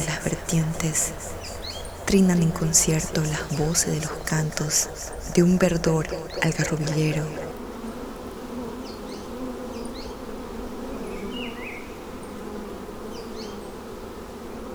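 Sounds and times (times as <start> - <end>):
bees buzzing: 0.0 - 8.0
speech: 0.2 - 1.4, 2.1 - 7.5.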